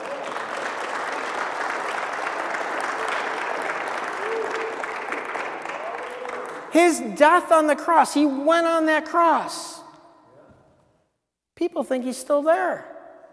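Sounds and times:
audience clapping: 0.0 - 7.1
speech: 6.7 - 9.8, 11.6 - 12.9.

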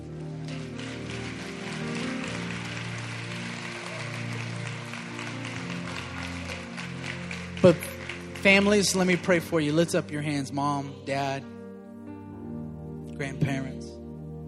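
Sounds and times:
audience applause: 0.0 - 9.5
speech: 7.6 - 11.5, 13.2 - 13.9.

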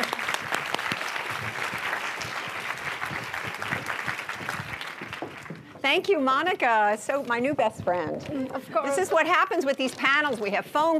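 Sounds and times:
audience applause welcoming a panel speaker on stage: 0.0 - 5.8
speech: 5.9 - 10.9.

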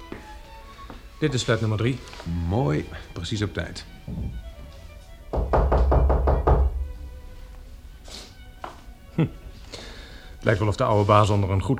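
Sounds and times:
speech: 1.2 - 4.5, 9.2 - 9.4, 10.4 - 11.7
firm knocks on a door: 4.0 - 4.7, 5.3 - 7.2.

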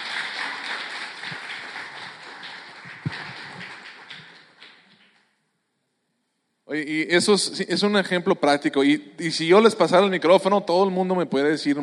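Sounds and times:
audience applause: 0.0 - 5.2
speech: 6.7 - 11.8.

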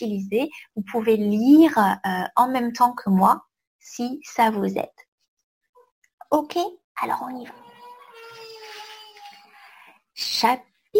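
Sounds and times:
speech: 0.0 - 5.0, 6.3 - 7.6, 10.2 - 10.9
baby crying: 7.4 - 9.7.

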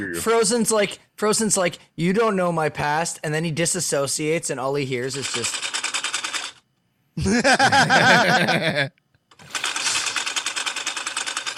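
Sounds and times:
speech: 0.0 - 5.8, 7.2 - 9.0
sewing machine whirring: 5.0 - 6.6, 9.3 - 11.5
laughter: 7.2 - 8.9.

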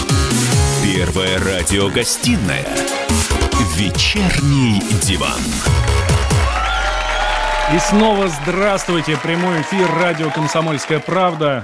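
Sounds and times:
speech: 0.9 - 6.5, 7.7 - 11.6
applause: 5.7 - 11.6.

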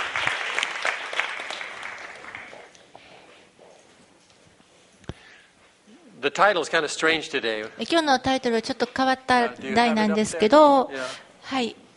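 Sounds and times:
audience applause of encouragement: 0.0 - 2.8
speech: 6.2 - 11.8.

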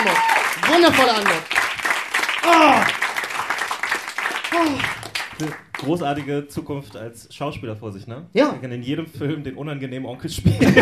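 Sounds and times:
speech: 0.0 - 1.4, 2.4 - 3.0, 4.5 - 10.8
audience applause: 0.0 - 6.4.

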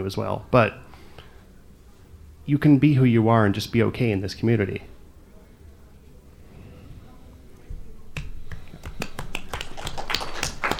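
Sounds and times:
speech: 0.0 - 0.8, 2.5 - 4.9
soft golf claps: 8.2 - 10.7.

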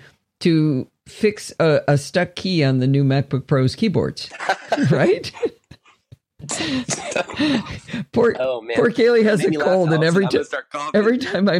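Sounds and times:
speech: 0.4 - 5.5, 6.4 - 11.5
laughter: 4.3 - 7.9, 9.2 - 10.5
person coughing with harsh raspy coughs: 6.4 - 7.9.

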